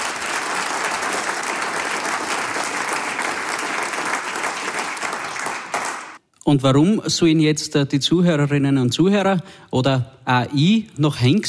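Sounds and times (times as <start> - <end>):
audience applause: 0.0 - 6.2
speech: 6.5 - 11.4.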